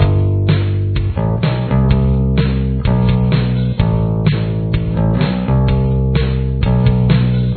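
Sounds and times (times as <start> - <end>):
bass with chorus effect: 0.0 - 7.5.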